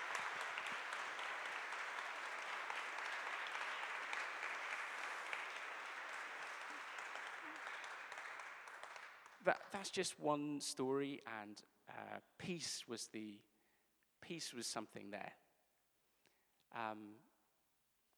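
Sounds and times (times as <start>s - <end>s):
audience applause: 0.0s - 9.9s
speech: 9.4s - 13.5s, 14.2s - 15.4s, 16.7s - 17.3s.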